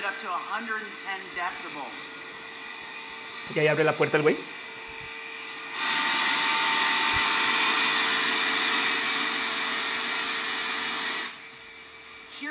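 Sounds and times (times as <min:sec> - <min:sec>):
data center server fans roaring: 0:00.0 - 0:12.5
speech: 0:00.2 - 0:02.4, 0:03.5 - 0:04.6.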